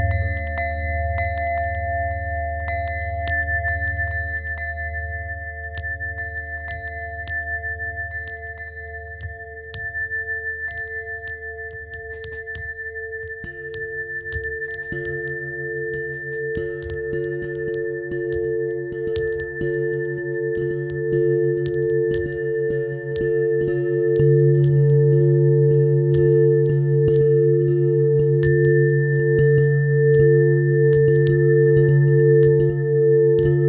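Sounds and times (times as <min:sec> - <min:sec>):
bells: 0:00.0 - 0:33.6.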